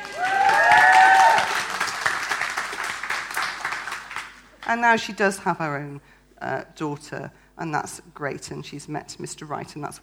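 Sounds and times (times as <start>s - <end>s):
whoops and cheers: 0.0s - 1.8s
audience applause: 0.0s - 4.5s
speech: 4.7s - 10.0s.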